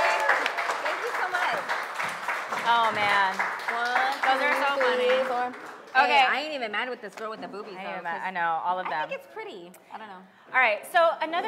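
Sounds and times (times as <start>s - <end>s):
audience applause: 0.0s - 6.0s
speech: 2.7s - 11.4s.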